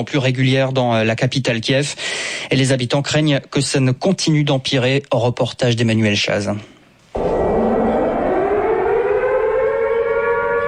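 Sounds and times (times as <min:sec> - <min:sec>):
speech: 0:00.0 - 0:06.7
air raid siren in Kiev: 0:07.2 - 0:10.6.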